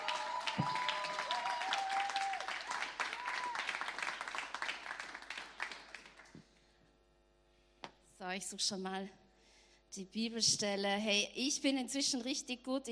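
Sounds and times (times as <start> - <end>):
audience applause: 0.0 - 6.3
speech: 8.4 - 9.2, 10.0 - 12.9.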